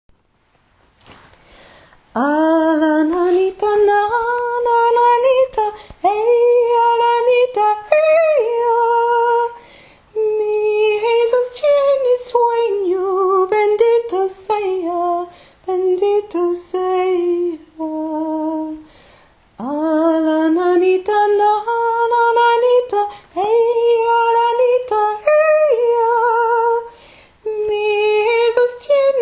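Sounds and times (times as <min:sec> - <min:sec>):
soprano singing: 0:02.1 - 0:18.9, 0:19.6 - 0:29.2.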